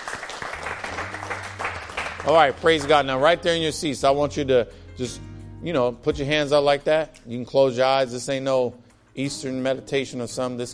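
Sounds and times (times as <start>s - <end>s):
audience clapping: 0.0s - 3.2s
low sustained musical tone: 0.6s - 10.7s
speech: 2.2s - 10.7s.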